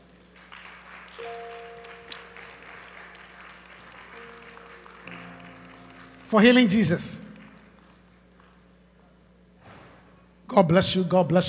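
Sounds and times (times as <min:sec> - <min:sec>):
audience clapping: 0:00.0 - 0:08.6
speech: 0:01.2 - 0:01.6, 0:06.3 - 0:07.2, 0:10.6 - 0:11.4
sustained musical tone: 0:01.2 - 0:08.1.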